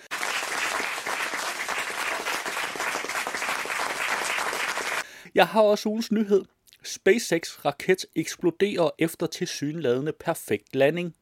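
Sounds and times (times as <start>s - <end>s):
applause: 0.0s - 5.1s
speech: 5.4s - 11.2s.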